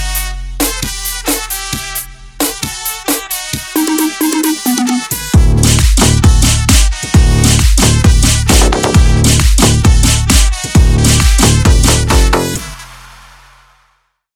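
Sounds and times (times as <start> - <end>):
mega funk music: 3.0 - 12.7.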